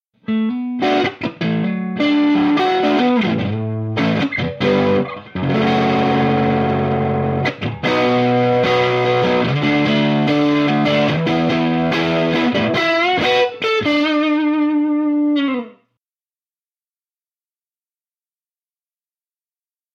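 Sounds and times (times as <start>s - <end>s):
overdriven sound: 0.3s - 15.8s.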